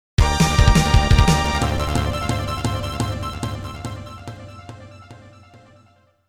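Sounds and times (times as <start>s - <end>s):
game over sound: 0.6s - 5.0s.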